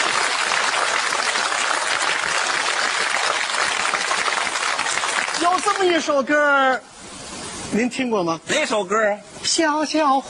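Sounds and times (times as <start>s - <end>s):
audience applause at a stage show: 0.0s - 6.2s
speech: 5.6s - 6.9s, 7.7s - 10.2s.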